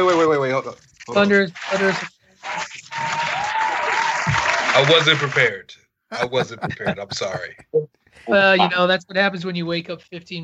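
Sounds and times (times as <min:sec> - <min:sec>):
speech: 0:00.0 - 0:02.2, 0:04.8 - 0:10.4
applause sound effect of crowd clapping: 0:01.6 - 0:05.6
laughter: 0:06.1 - 0:07.7.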